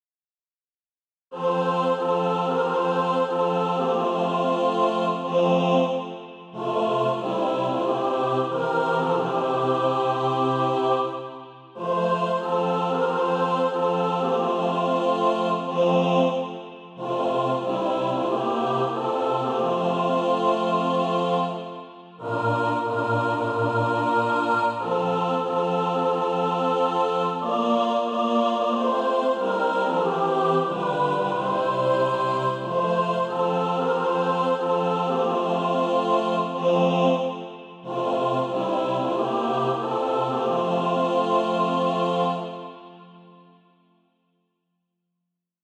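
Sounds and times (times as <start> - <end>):
mixed SATB choir singing: 1.3 - 43.6.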